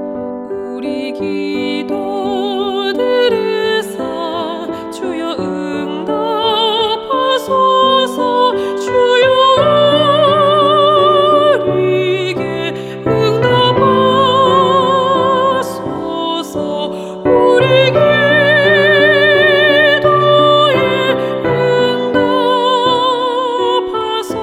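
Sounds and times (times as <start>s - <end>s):
soprano singing: 0.2s - 24.4s.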